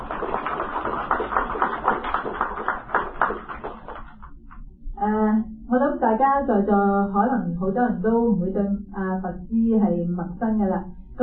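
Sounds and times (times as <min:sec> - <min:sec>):
audience applause: 0:00.0 - 0:04.3
speech: 0:06.1 - 0:11.2.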